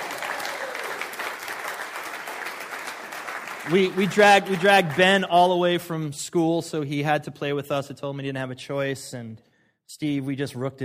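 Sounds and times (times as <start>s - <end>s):
audience applause: 0.0s - 5.3s
speech: 3.6s - 10.8s.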